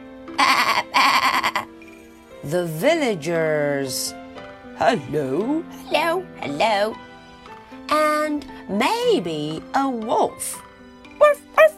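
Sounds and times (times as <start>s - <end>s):
sheep bleating: 0.4s - 1.7s
speech: 2.4s - 4.2s, 4.8s - 7.0s, 7.9s - 10.7s.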